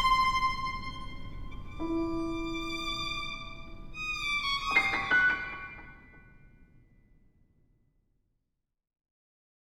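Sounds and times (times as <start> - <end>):
violin sonata: 0.0 - 6.2.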